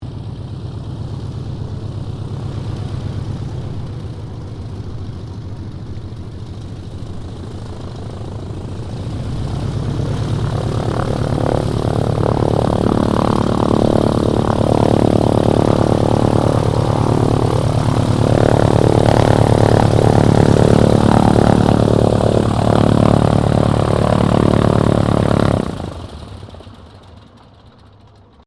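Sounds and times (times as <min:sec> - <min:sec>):
Boeing PT-17 Stearman aircraft taxiing: 0:00.0 - 0:28.4.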